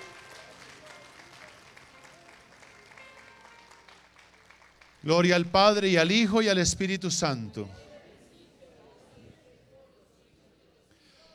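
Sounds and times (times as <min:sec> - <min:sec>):
audience applauding: 0:00.0 - 0:07.6
speech: 0:05.0 - 0:07.9.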